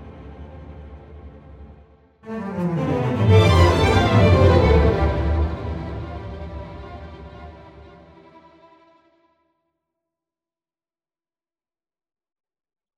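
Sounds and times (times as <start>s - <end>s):
string tremolo accent: 2.3s - 8.6s.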